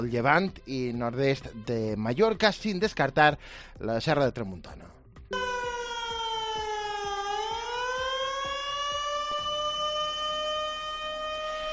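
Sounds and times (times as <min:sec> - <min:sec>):
speech: 0:00.0 - 0:05.0
flood warning siren wailing: 0:05.3 - 0:11.7.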